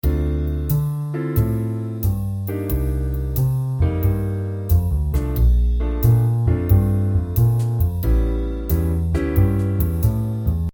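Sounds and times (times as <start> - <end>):
jazz music: 0.0 - 10.7.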